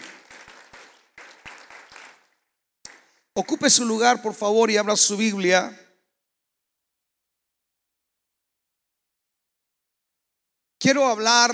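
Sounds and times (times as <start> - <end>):
audience applauding: 0.0 - 4.5
speech: 3.4 - 5.9, 10.9 - 11.5.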